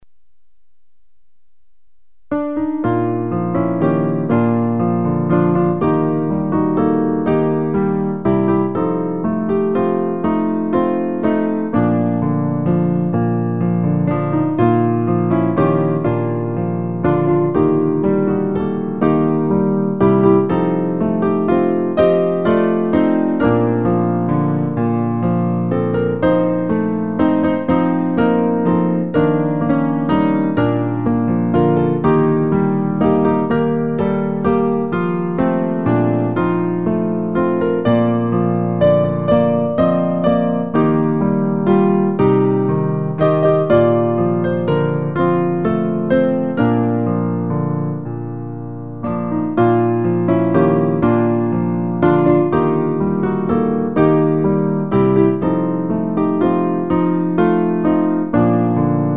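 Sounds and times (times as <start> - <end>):
piano: 0.0 - 59.1.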